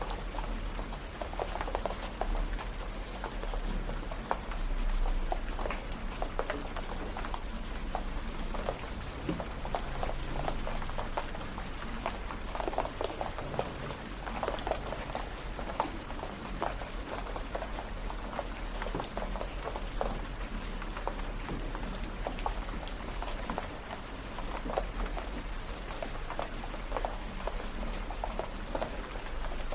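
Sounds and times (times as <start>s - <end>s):
steady rain: 0.0s - 29.7s.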